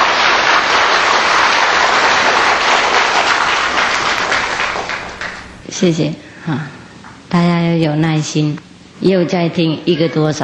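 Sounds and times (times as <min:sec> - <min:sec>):
crowd applause: 0:00.0 - 0:05.6
speech: 0:05.8 - 0:10.4.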